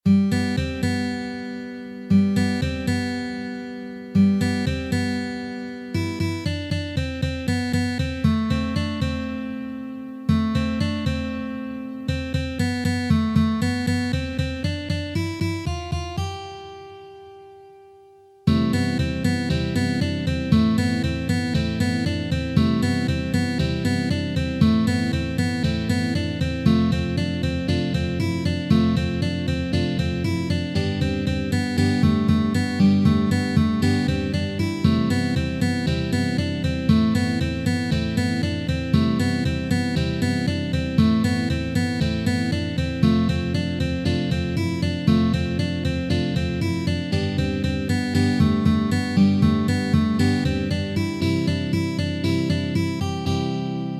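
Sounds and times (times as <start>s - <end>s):
fast tempo guitar: 0.0s - 17.6s, 18.5s - 53.9s.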